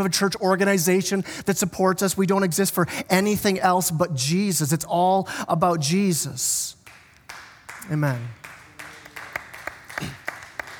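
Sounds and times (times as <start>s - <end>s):
speech: 0.0s - 6.8s, 7.9s - 8.4s
a few people clapping sparsely: 6.8s - 10.7s.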